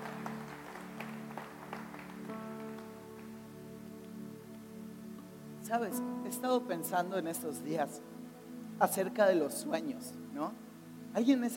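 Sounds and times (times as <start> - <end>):
audience applauding: 0.0 - 3.4
speech: 5.7 - 8.2, 8.8 - 11.5.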